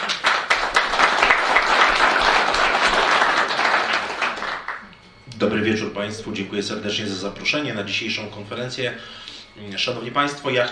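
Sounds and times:
crowd applause: 0:00.0 - 0:04.9
speech: 0:05.4 - 0:10.7.

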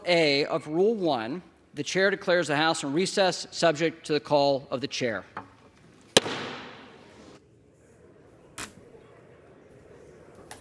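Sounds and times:
speech: 0:00.1 - 0:05.4
gavel banging on the rostrum: 0:06.2 - 0:07.1.

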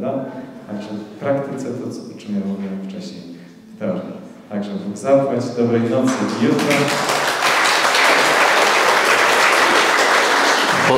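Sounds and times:
speech: 0:00.0 - 0:07.1
applause: 0:06.1 - 0:10.9.

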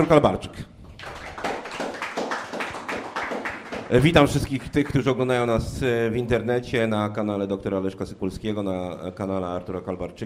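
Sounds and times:
speech: 0:00.0 - 0:00.7, 0:03.9 - 0:10.2
hand clapping greeting a debate guest: 0:00.9 - 0:04.8.

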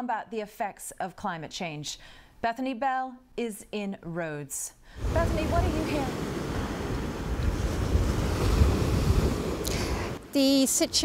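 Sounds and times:
speech: 0:00.0 - 0:06.3, 0:10.3 - 0:11.0
strong wind with gusty buffeting: 0:05.0 - 0:11.0.

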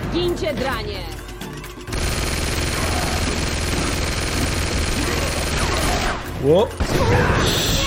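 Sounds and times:
speech: 0:00.2 - 0:01.2, 0:06.4 - 0:07.7
rifle gunfire in a radio drama battle scene: 0:01.9 - 0:07.1.

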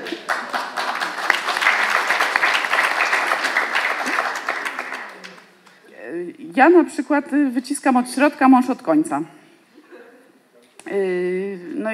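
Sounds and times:
audience applause: 0:00.0 - 0:05.6
speech: 0:06.6 - 0:09.4.

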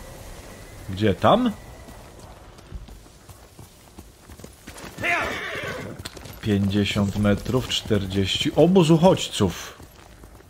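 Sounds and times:
horse hooves clip-clopping in a video game: 0:00.0 - 0:10.4
speech: 0:00.9 - 0:01.6, 0:06.4 - 0:09.8
horse neighing in a video game: 0:05.0 - 0:06.0.

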